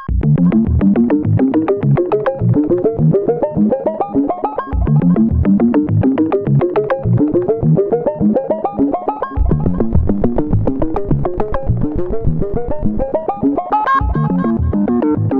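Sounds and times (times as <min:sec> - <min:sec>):
latched synth arpeggio: 0:00.2 - 0:15.3.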